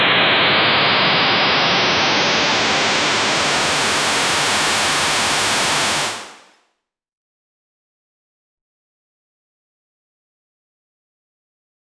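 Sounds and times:
logo sound: 0:00.2 - 0:06.5.

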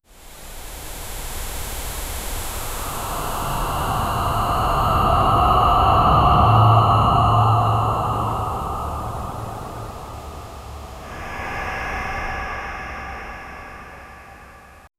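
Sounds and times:
ominous ghostly paranormal whisper: 0:02.4 - 0:14.9.

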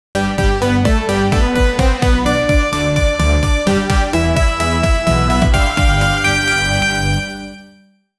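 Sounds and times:
techno rave music: 0:00.2 - 0:07.5.

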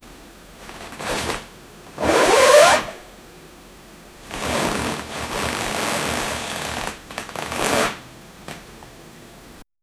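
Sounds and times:
fabric curtain flapping and wrapping: 0:00.6 - 0:03.0, 0:04.2 - 0:08.0.

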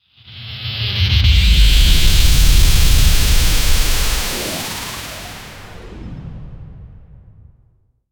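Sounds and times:
sci-fi nuclear star spawn: 0:01.4 - 0:07.5.

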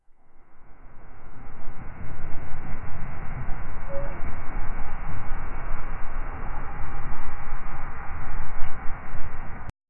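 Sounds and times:
water flowing and gurgling: 0:00.0 - 0:09.7.

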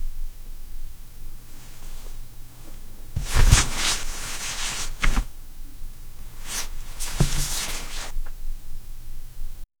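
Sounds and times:
leather book being picked up: 0:01.6 - 0:05.4, 0:06.2 - 0:08.2.

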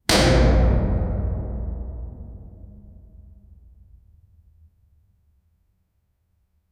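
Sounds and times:
pounding on a heavy iron door: 0:00.0 - 0:03.8.

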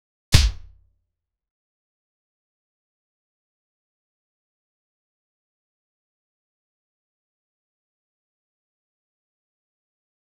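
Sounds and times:
hit marker sound for FPS game: 0:00.4 - 0:00.7.

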